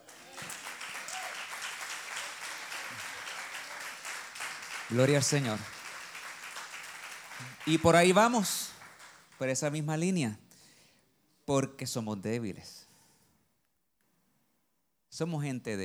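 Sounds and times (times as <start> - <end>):
audience applause: 0.0 - 9.4
speech: 4.9 - 5.8, 7.6 - 8.7, 9.4 - 10.4, 11.5 - 12.9, 15.2 - 15.8.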